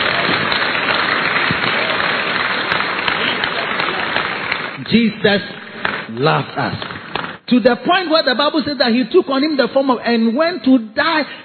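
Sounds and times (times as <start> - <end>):
audience clapping: 0.0 - 7.4
speech: 4.9 - 11.4.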